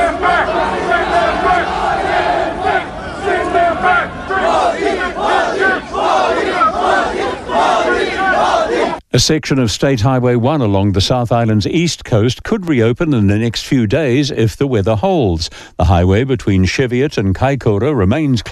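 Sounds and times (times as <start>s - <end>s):
crowds chanting anti-immigrant slogans and the Prime Minister's name: 0.0s - 9.0s
speech: 9.2s - 18.5s.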